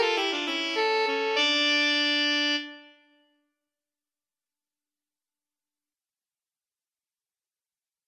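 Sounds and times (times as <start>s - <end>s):
saxophone duet: 0.0s - 3.0s.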